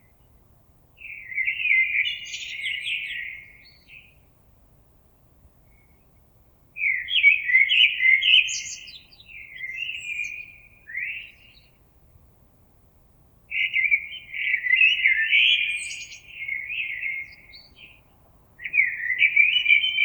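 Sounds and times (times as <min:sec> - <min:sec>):
common blackbird singing: 0:01.0 - 0:04.2, 0:06.8 - 0:11.8, 0:13.5 - 0:20.0.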